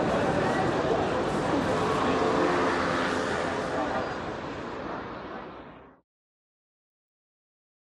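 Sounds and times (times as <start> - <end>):
city street ambience: 0.0 - 6.0.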